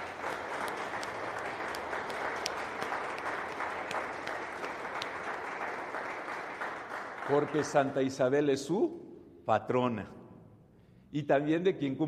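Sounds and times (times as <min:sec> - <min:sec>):
audience applause: 0:00.0 - 0:08.1
speech: 0:07.3 - 0:10.2, 0:11.1 - 0:12.0.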